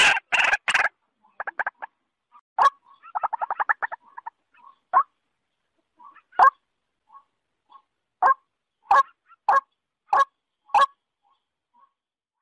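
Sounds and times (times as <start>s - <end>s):
waterhen-type calls: 0.0s - 1.9s, 2.6s - 5.2s, 5.8s - 11.0s.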